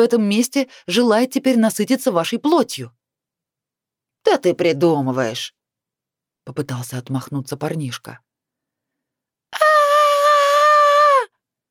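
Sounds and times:
speech: 0.0 - 3.0, 4.2 - 5.6, 6.4 - 8.3
girl screaming: 9.6 - 11.3.

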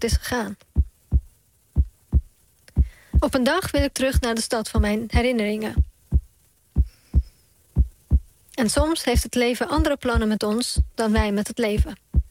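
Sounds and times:
speech: 0.0 - 0.7, 3.2 - 5.9, 8.6 - 12.0
heartbeat of journalist and writer: 0.8 - 3.9, 5.8 - 12.2.

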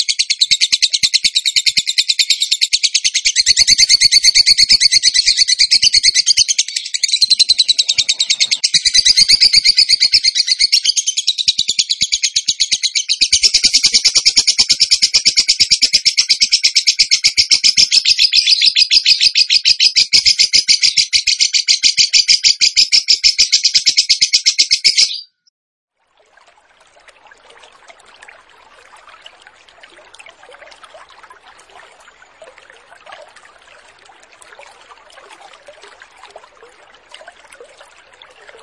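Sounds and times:
bird song trill: 0.0 - 25.5.

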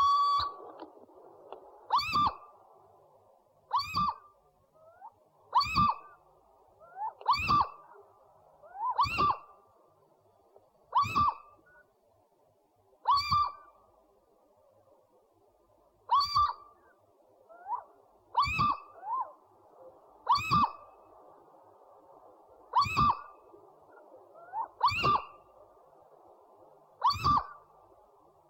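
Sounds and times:
owl calling with upslurred whistles: 0.0 - 0.9, 1.8 - 2.6, 3.7 - 6.2, 6.8 - 9.6, 10.9 - 11.9, 13.0 - 13.8, 16.1 - 21.1, 22.7 - 25.7, 27.0 - 27.7.

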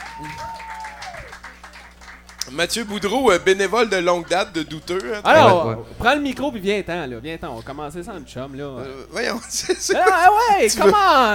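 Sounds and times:
faint audience applause at a fair: 0.0 - 3.2
speech: 0.2 - 0.6, 2.5 - 11.3.

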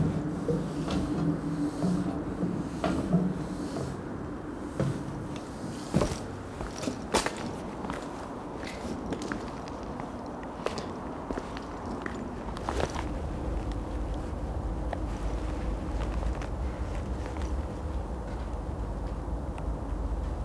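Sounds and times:
low continuous hum: 0.0 - 20.4
footsteps walking from subway station: 5.8 - 20.4.

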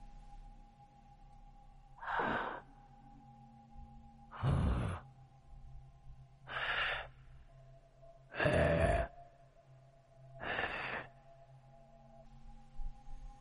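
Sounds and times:
raspy wheezing breath: 2.0 - 2.7, 4.3 - 5.1, 6.5 - 7.3, 8.3 - 9.1, 10.4 - 11.2.

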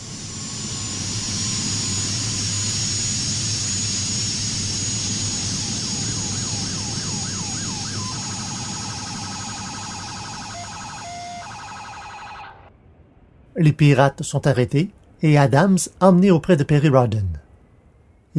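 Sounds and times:
jet airplane engines roaring while landing in India: 0.0 - 12.7
warbling electronic tone: 0.4 - 12.7
speech: 13.6 - 17.4.

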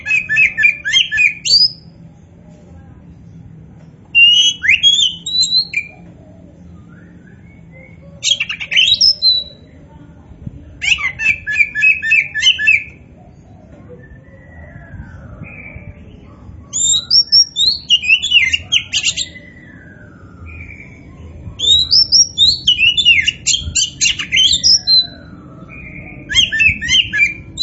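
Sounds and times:
Oriental magpie-robin song whistles and chatter: 0.0 - 2.0, 4.1 - 10.0, 10.8 - 27.6
low steady hum: 0.0 - 27.6.

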